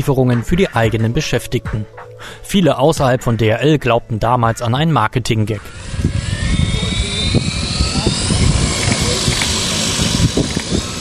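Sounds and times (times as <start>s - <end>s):
speech: 0.0s - 6.2s
delivery drone rotors buzzing in flight: 5.4s - 10.9s
wind rumble: 5.6s - 10.9s.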